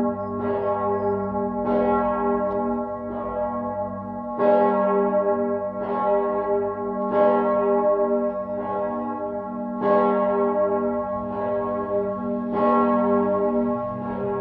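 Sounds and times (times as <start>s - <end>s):
cathedral bell tuned to G sharp ringing: 0.0s - 14.3s.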